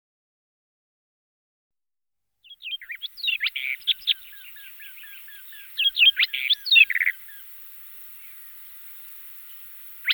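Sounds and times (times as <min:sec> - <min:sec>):
barred warbler song: 0:02.4 - 0:10.1.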